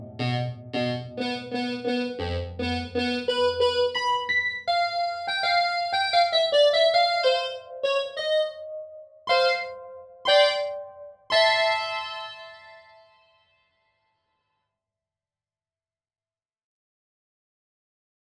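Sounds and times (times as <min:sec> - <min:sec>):
analog piano: 0:00.0 - 0:13.4.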